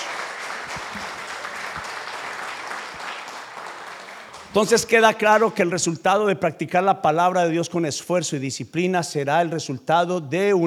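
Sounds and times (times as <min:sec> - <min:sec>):
audience applause: 0:00.0 - 0:05.4
speech: 0:04.5 - 0:10.6.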